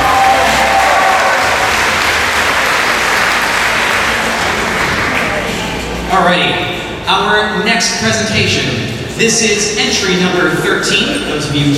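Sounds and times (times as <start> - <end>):
crowd applauding: 0.0 - 5.8
faint murmur of voices: 0.0 - 11.7
speech: 6.2 - 11.7.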